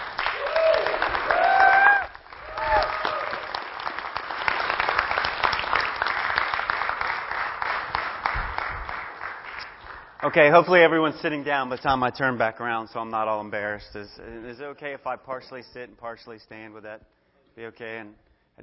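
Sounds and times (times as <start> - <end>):
audience applause welcoming a speaker: 0.0 - 10.9
cheering shouts and whistles: 0.4 - 3.4
speech: 10.3 - 18.6.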